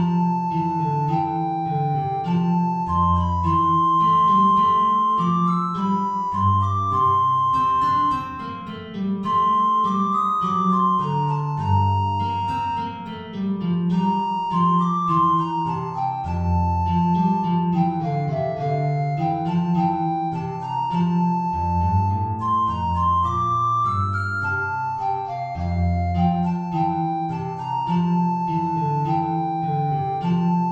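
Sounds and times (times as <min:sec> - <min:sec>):
guitar: 0:00.0 - 0:30.7
soprano recorder: 0:00.0 - 0:30.7.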